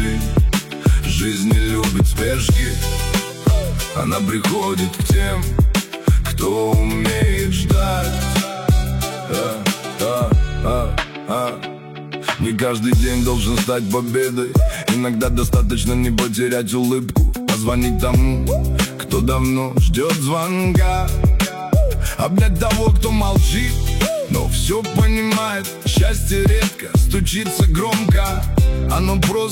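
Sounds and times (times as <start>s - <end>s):
deep atmospheric deep bass hip hop mix: 0.0s - 11.6s, 12.3s - 29.5s.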